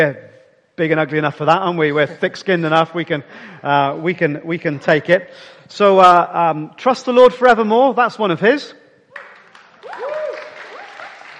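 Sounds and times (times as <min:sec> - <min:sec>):
speech: 0:00.0 - 0:08.8
audience applause: 0:09.2 - 0:11.3
whoops or cheers: 0:09.8 - 0:11.3.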